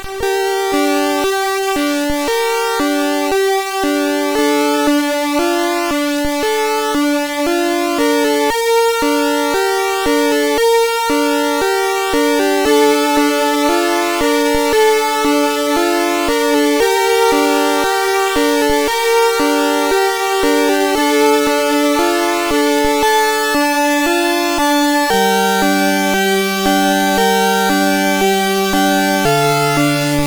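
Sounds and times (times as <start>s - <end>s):
SID chip CSG8580R5 chiptune music: 0.2s - 30.2s.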